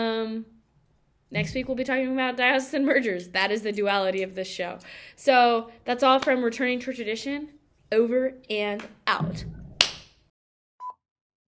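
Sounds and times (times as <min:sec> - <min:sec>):
speech: 0:01.3 - 0:09.6
slap: 0:08.8 - 0:10.2.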